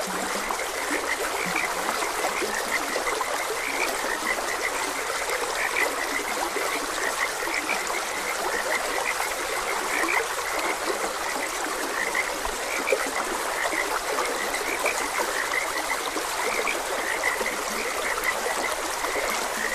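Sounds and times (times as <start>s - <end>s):
frogs croaking: 0.0s - 19.7s
running stream hiss: 0.0s - 19.7s.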